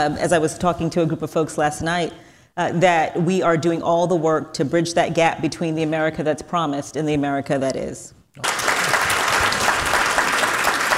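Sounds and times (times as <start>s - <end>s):
speech: 0.0s - 8.6s
audience clapping: 8.4s - 10.9s.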